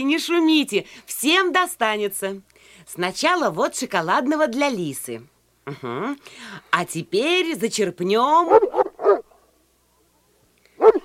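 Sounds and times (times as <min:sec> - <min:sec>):
speech: 0:00.0 - 0:08.8
dog barking hard while straining at its leash: 0:08.5 - 0:09.3, 0:10.8 - 0:11.0.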